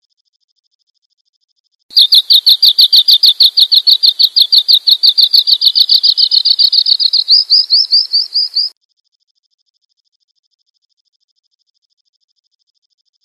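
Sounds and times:
bird chirping: 1.9s - 8.7s.

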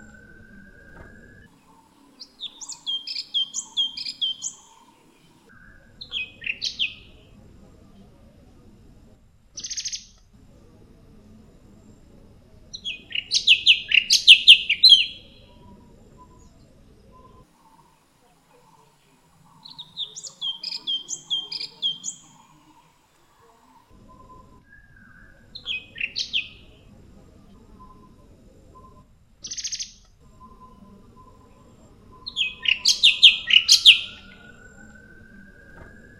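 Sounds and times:
cucak cungkok bird calling: 0.0s - 7.2s, 12.8s - 16.5s, 18.6s - 26.7s, 28.8s - 36.1s.

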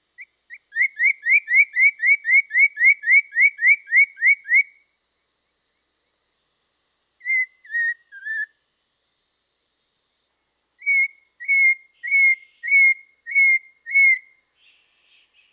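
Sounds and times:
poksay mandarin variation singing: 0.0s - 6.0s, 7.2s - 8.6s, 10.8s - 15.5s.

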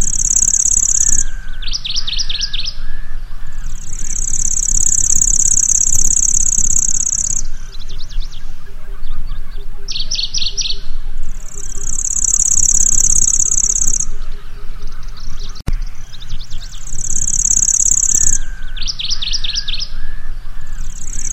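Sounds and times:
lanceolated warbler high insect-like reeling trill: 0.0s - 21.3s.

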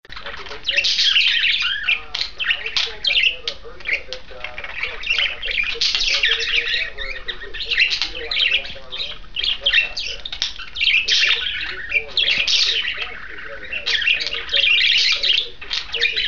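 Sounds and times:
pair of budgerigars warbling chatter: 0.0s - 16.2s.

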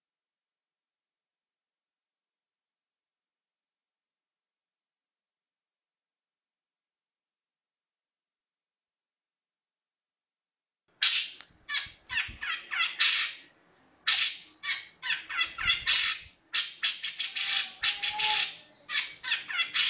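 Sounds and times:
long-tailed shrike singing a chattering medley: 11.1s - 13.5s, 14.1s - 19.8s.

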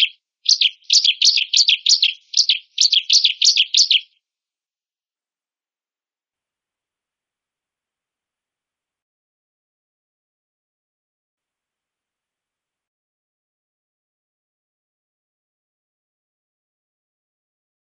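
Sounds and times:
ciblek bird calling: 0.0s - 4.1s.

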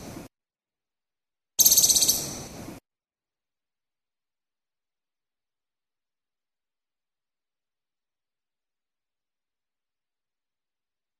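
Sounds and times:
Moluccan woodcock giving a harsh pulsed rattle call in Maluku: 1.6s - 2.4s.

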